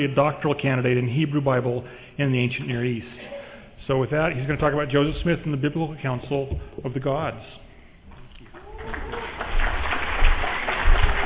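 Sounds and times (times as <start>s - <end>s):
speech: 0.0s - 7.6s
audience applause: 8.5s - 11.2s.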